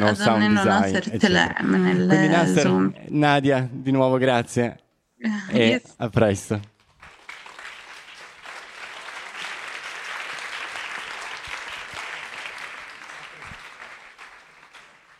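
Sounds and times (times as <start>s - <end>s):
speech: 0.0s - 6.7s
audience applause: 7.0s - 15.1s.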